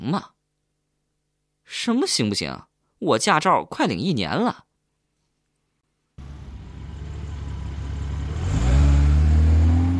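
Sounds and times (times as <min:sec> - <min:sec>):
speech: 0:00.0 - 0:00.4, 0:01.7 - 0:04.7
car engine running and driving off: 0:06.2 - 0:09.9.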